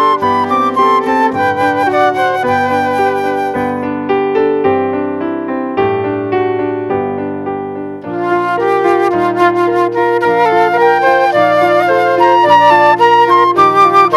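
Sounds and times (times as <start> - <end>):
two flutes: 0.0 - 4.0, 8.1 - 14.1
piano: 0.0 - 14.1.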